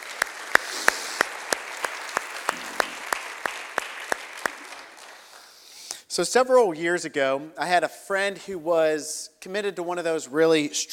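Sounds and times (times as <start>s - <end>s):
audience clapping welcoming guests: 0.0s - 5.6s
speech: 6.2s - 10.9s.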